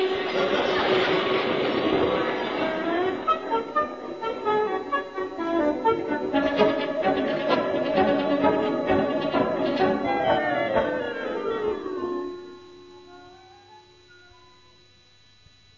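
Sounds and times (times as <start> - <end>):
train passing: 0.0 - 12.3.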